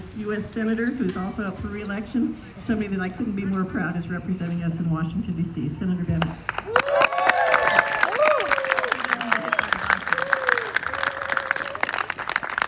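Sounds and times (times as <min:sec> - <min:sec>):
speech: 0:00.2 - 0:06.8
crowd applause: 0:06.5 - 0:12.6.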